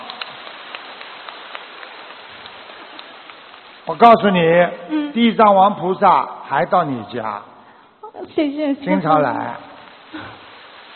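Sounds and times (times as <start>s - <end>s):
applause: 0.0s - 4.0s
speech: 3.9s - 7.5s, 8.2s - 10.4s.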